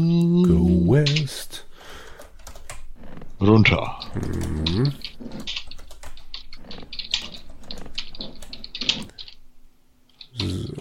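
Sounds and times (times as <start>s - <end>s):
speech: 0.0s - 1.6s, 3.4s - 5.6s
rapid typing on a computer keyboard: 2.1s - 2.8s, 3.9s - 9.4s.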